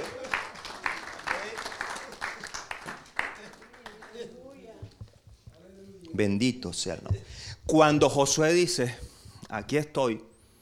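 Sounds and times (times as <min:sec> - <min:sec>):
audience applause: 0:00.0 - 0:04.5
speech: 0:06.2 - 0:10.3.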